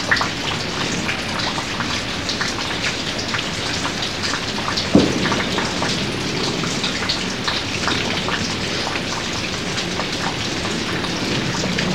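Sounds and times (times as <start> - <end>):
slow rain: 0.0 - 11.9.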